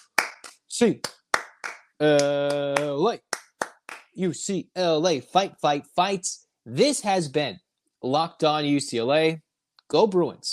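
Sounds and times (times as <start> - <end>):
rhythmic hand claps: 0.0 - 4.2
speech: 0.8 - 1.2, 2.0 - 3.3, 4.2 - 10.5.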